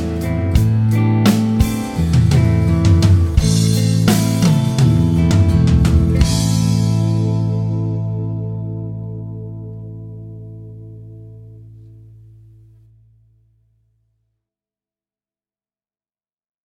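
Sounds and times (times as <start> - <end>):
minor triad vamp in A: 0.0 - 13.0.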